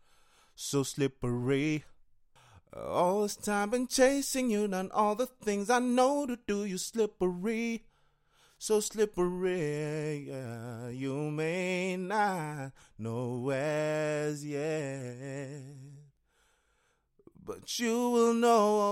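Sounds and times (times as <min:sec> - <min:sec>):
a cappella pop RnB singing in C sharp minor: 0:02.8 - 0:07.9, 0:08.6 - 0:16.1, 0:17.3 - 0:18.9.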